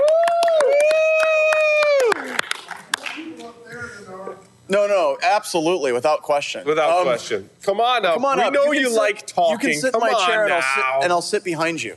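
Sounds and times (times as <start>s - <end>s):
audience applause: 0.0s - 3.3s
speech: 4.7s - 11.9s.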